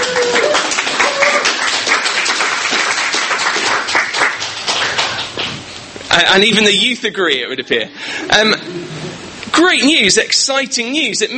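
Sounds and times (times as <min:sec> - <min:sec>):
audience applause: 0:00.0 - 0:05.7
speech: 0:06.2 - 0:08.8, 0:09.6 - 0:11.3.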